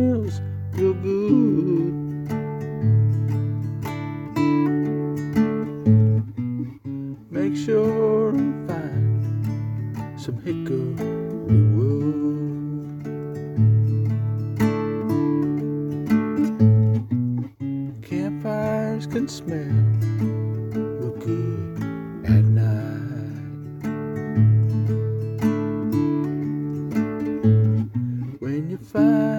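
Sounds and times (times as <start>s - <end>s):
cowboy campfire song on classical guitar: 0.0s - 29.3s.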